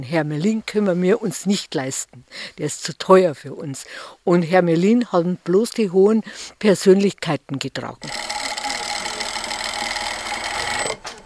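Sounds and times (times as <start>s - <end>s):
speech: 0.0s - 8.3s
sewing machine rattling in a sewing room: 8.0s - 11.2s.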